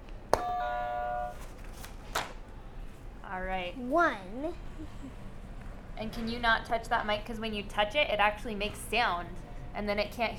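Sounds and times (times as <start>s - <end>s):
buzzer sound effect: 0.4s - 1.4s
speech: 3.4s - 5.3s, 6.0s - 10.3s.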